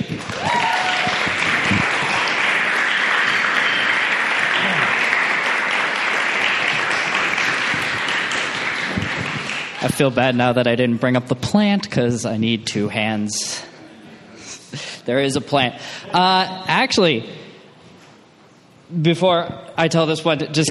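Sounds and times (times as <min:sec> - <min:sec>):
audience applause: 0:00.0 - 0:10.0
speech: 0:09.9 - 0:13.7, 0:14.7 - 0:17.4, 0:18.9 - 0:20.6.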